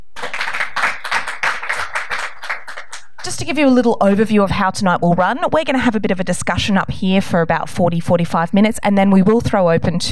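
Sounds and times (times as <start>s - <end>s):
audience applause at an evening discussion event on higher education in Sydney: 0.0s - 3.2s
speech: 3.3s - 10.1s.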